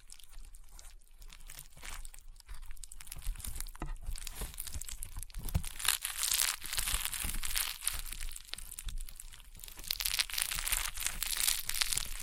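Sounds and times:
rainbow honeycomb slime being squeezed, crunching and crackling: 0.0s - 12.2s.

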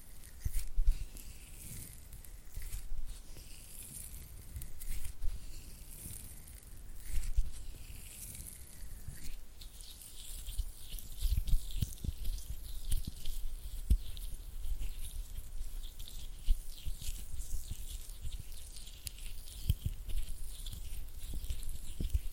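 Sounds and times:
oily hand and flutter finger sounds: 0.0s - 22.3s.

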